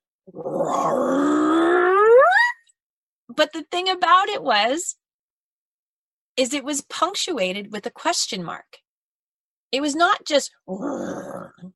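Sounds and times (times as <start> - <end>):
speech: 0.3 - 2.0, 3.4 - 5.0, 6.4 - 8.8, 9.7 - 11.7
human voice imitating a gravelly, non-intimidating growl: 0.3 - 2.3, 10.7 - 11.7.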